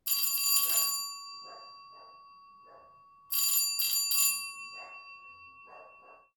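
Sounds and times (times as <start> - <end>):
doorbell ringing: 0.0 - 6.3
dog barking: 0.7 - 3.0, 4.7 - 6.3.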